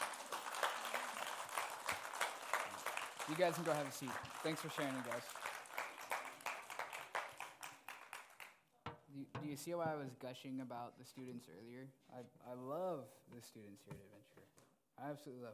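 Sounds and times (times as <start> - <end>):
audience applause: 0.0 - 8.6
speech: 3.3 - 5.4, 9.2 - 15.5.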